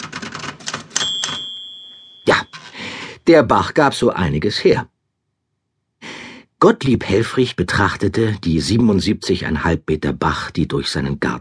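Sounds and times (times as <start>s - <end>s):
old typewriter typing: 0.0s - 1.5s
typewriter line-end bell ringing: 0.0s - 3.0s
speech: 3.3s - 4.9s, 6.6s - 11.4s.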